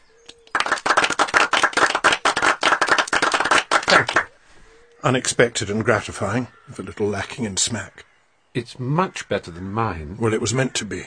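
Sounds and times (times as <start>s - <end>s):
room full of people clapping: 0.3s - 4.3s
speech: 3.9s - 4.2s, 5.0s - 11.0s.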